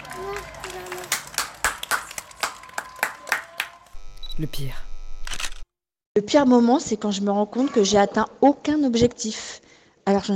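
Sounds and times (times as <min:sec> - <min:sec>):
clapping: 0:00.0 - 0:04.0
speech: 0:04.4 - 0:04.9, 0:06.2 - 0:10.3.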